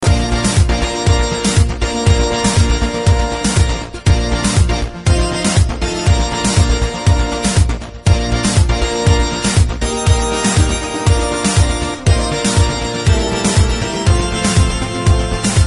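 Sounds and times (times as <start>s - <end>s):
techno remix: 0.0s - 15.6s.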